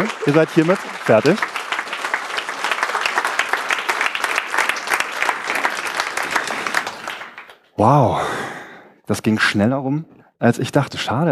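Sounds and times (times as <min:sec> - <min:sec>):
speech: 0:00.0 - 0:01.5, 0:07.8 - 0:08.4, 0:09.1 - 0:11.2
audience applause: 0:00.0 - 0:08.2.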